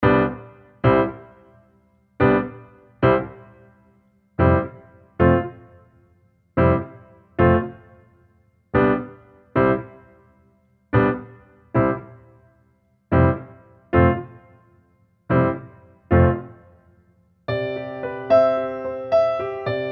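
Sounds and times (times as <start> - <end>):
EZkeys Studio Grand piano playing a basic rock pattern: 0.0 - 1.4, 2.2 - 3.6, 4.4 - 5.7, 6.6 - 7.9, 8.8 - 10.1, 10.9 - 12.3, 13.1 - 14.5, 15.3 - 16.6, 17.5 - 19.9.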